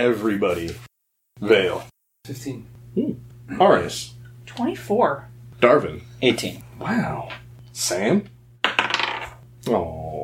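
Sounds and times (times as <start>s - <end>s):
speech: 0.0s - 8.3s, 9.6s - 10.0s
dice tumbling across a hard tabletop: 8.6s - 9.4s.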